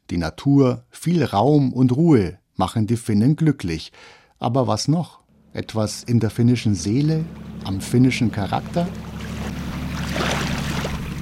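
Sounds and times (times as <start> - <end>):
speech: 0.1 - 9.1
ferry boat engine droning while travelling to the island of Lonna in Finland: 5.3 - 11.1
broadband wind and water rush: 6.9 - 11.1.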